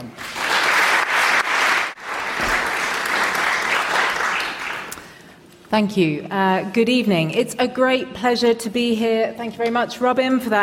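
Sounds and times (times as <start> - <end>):
audience applause welcoming a speaker at an evening lecture: 0.0 - 5.0
speech: 5.7 - 10.6.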